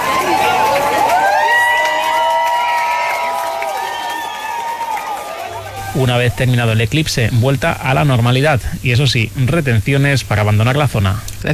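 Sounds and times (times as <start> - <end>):
crowd applauding after eclipse: 0.0 - 6.6
speech: 6.0 - 11.5.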